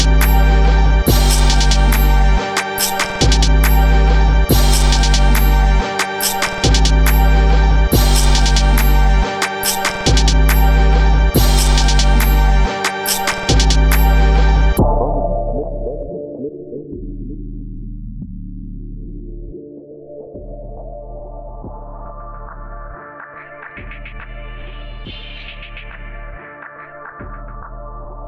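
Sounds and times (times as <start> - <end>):
instrumental music: 0.0 - 15.3.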